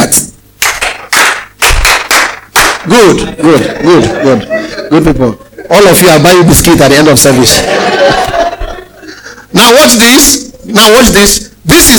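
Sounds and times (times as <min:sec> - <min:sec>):
audience clapping: 0:00.6 - 0:03.6
speech: 0:02.9 - 0:08.5, 0:09.6 - 0:11.9
laughter: 0:03.0 - 0:06.0, 0:07.3 - 0:09.5.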